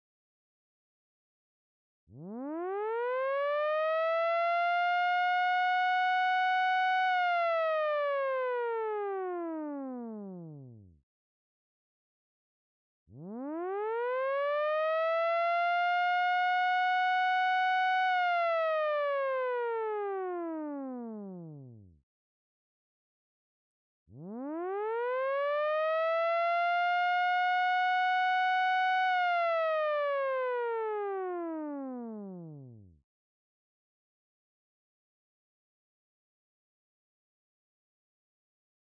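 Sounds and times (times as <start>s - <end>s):
evacuation information siren from outdoor loudspeakers: 2.2s - 10.7s, 13.2s - 21.7s, 24.2s - 32.8s.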